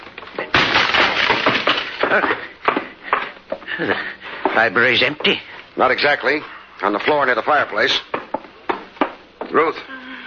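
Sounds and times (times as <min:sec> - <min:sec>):
library door being forced and splintered: 0:00.5 - 0:02.3
speech: 0:03.8 - 0:08.1, 0:09.5 - 0:09.9.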